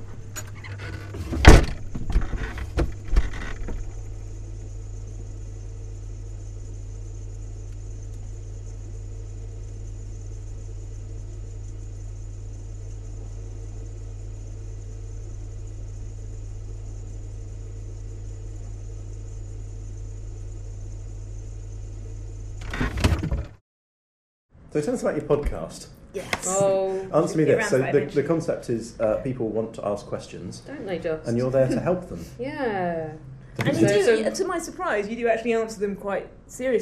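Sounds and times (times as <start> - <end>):
low electrical hum from inside a running fridge: 0.0 - 23.6, 24.6 - 36.7
fridge door clunking: 0.2 - 4.1, 22.6 - 23.6
speech: 24.7 - 36.7.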